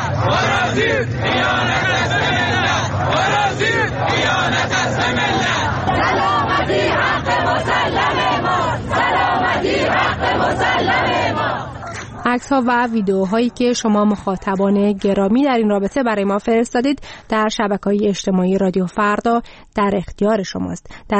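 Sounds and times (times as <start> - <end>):
street protest crowd chanting: 0.0 - 13.6
speech: 12.3 - 21.1.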